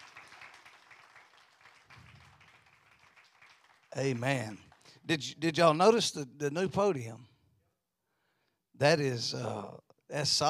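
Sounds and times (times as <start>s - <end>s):
room full of people applauding: 0.0s - 5.0s
speech: 4.0s - 7.3s, 8.8s - 10.4s.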